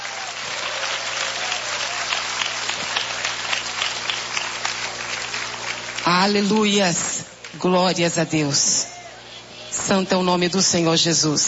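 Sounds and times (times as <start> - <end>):
audience applause: 0.0 - 7.6
speech: 6.1 - 8.9, 9.9 - 11.4.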